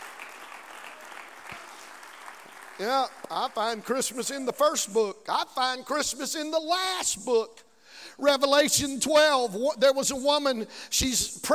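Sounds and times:
audience clapping: 0:00.0 - 0:04.5
speech: 0:02.8 - 0:11.5.

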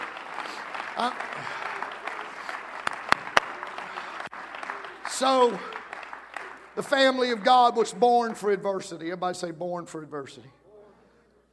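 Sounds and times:
audience clapping hands in worship: 0:00.0 - 0:08.9
speech: 0:01.0 - 0:01.7, 0:05.2 - 0:05.8, 0:06.8 - 0:10.6.

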